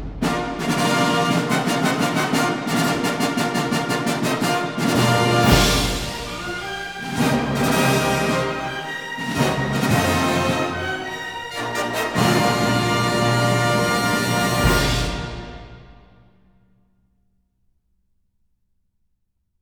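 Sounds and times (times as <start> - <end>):
orchestral fanfare: 0.2 - 16.5.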